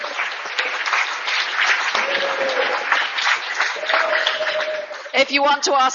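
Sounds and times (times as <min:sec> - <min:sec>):
audience applause: 0:00.0 - 0:05.4.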